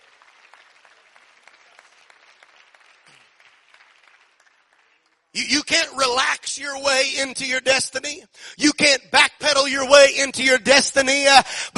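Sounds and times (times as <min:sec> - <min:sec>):
audience clapping: 0:00.0 - 0:05.4
speech: 0:05.4 - 0:11.7.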